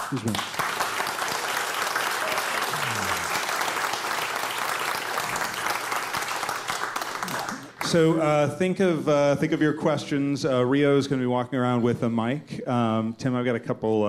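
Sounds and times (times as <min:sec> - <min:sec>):
audience applause: 0:00.0 - 0:08.0
speech: 0:00.1 - 0:00.6, 0:07.9 - 0:14.0.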